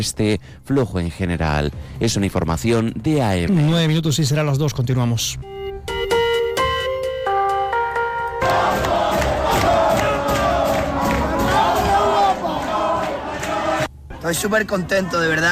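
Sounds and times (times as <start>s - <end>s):
speech: 0.0s - 6.0s, 14.2s - 15.4s
horn-like melodic tones: 5.4s - 13.8s
crowds in Extremadura streets celebrating Spain's World Cup win: 8.3s - 15.4s.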